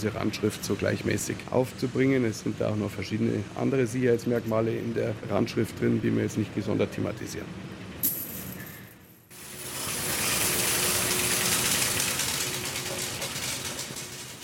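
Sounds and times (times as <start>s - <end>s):
speech: 0.0s - 7.7s
low machine hum: 0.0s - 14.4s
hundreds of new euro coins pouring into a bin: 8.0s - 14.4s.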